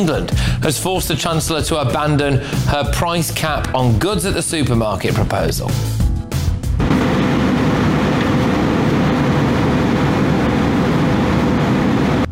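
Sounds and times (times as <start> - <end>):
speech: 0.0 - 6.0
Russian fighter jet buzzing an RAF aircraft over international waters: 6.8 - 12.2.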